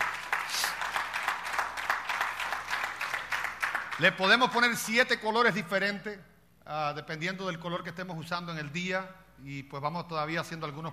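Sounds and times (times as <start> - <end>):
audience applause: 0.0 - 4.1
speech: 4.0 - 10.9.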